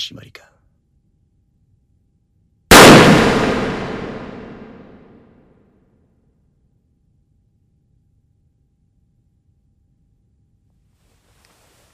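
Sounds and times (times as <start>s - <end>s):
revolver firing a blank round in Russian roulette: 2.7s - 5.2s.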